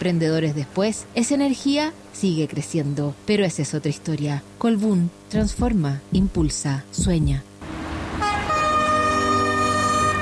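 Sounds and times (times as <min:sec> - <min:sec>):
speech: 0:00.0 - 0:07.5
train horn blaring on a railway line: 0:07.7 - 0:10.1.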